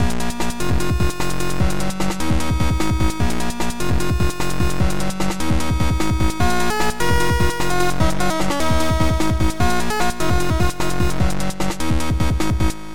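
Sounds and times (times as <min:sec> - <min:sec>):
chiptune sound: 0:00.5 - 0:12.9.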